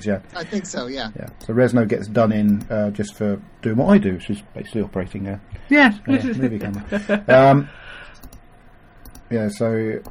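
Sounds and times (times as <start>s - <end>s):
speech: 0.0s - 8.4s, 9.3s - 10.1s
computer mouse clicks while browsing through pictures: 2.4s - 2.8s, 8.2s - 9.3s, 10.0s - 10.1s.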